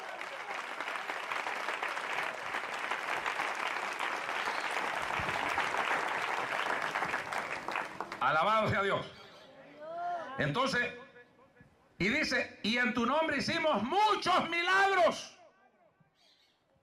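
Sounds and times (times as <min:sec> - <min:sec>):
audience applauding: 0:00.0 - 0:08.5
speech: 0:08.3 - 0:09.2, 0:10.4 - 0:11.0, 0:12.0 - 0:15.4.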